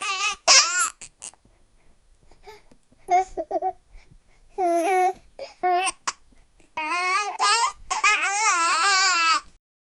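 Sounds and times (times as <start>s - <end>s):
baby talk gibberish: 0.0s - 1.4s, 4.6s - 6.2s, 6.8s - 9.5s.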